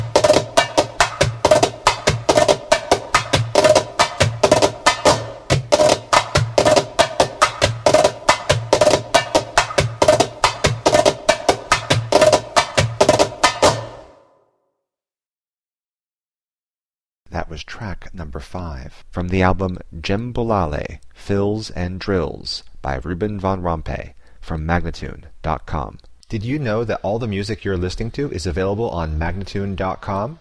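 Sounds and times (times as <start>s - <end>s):
djembe: 0.0s - 14.2s
clear and crisp fast speech: 17.3s - 30.4s.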